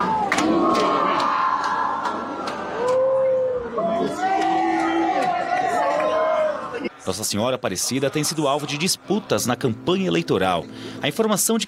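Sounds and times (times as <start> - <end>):
crowd applauding: 0.0 - 6.8
speech: 7.1 - 11.6.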